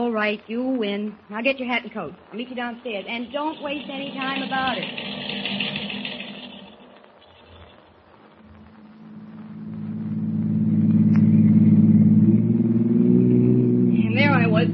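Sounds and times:
speech: 0.0s - 5.3s
taxi engine driving: 2.3s - 7.2s, 8.4s - 14.7s.

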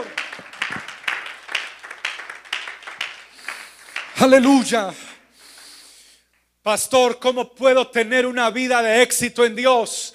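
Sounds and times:
audience applause: 0.0s - 4.6s
speech: 4.2s - 5.0s, 6.6s - 10.1s.

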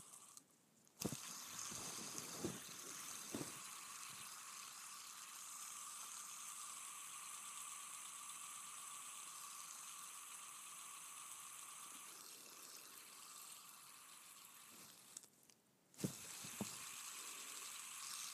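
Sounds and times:
fidget spinner whirring: 0.0s - 18.3s.

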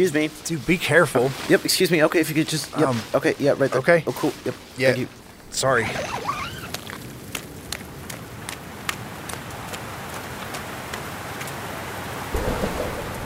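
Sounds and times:
speech: 0.0s - 6.4s
heavy rain: 0.0s - 13.2s
thunder: 12.3s - 13.2s.

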